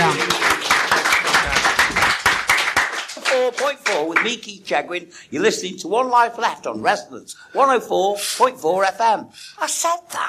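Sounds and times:
audience applause: 0.0 - 4.3
speech: 4.2 - 10.2.

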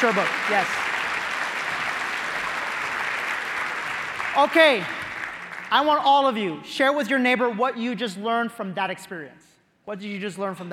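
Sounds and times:
speech: 0.0 - 0.8, 4.4 - 5.0, 5.7 - 10.7
audience applause: 0.0 - 6.0.

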